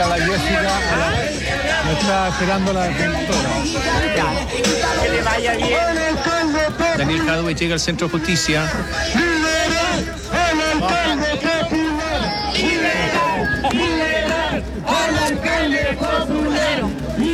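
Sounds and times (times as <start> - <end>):
speech: 0.0 - 1.0, 1.9 - 9.3
crowd shouting slogans: 0.0 - 17.3
laughter: 0.0 - 17.3.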